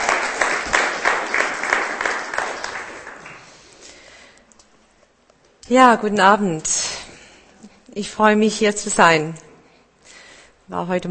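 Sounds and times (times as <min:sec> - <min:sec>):
audience applause: 0:00.0 - 0:03.8
speech: 0:05.7 - 0:06.8, 0:08.0 - 0:09.5, 0:10.7 - 0:11.0.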